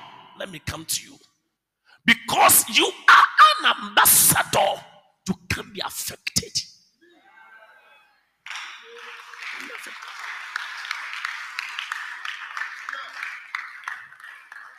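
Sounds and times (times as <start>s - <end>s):
speech: 0.5s - 1.2s, 2.1s - 6.7s
audience clapping: 8.5s - 14.7s.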